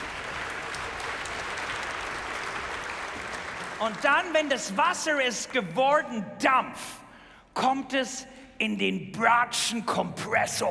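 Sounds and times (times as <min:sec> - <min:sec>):
audience applause: 0:00.0 - 0:04.5
speech: 0:03.8 - 0:07.0, 0:07.6 - 0:10.6.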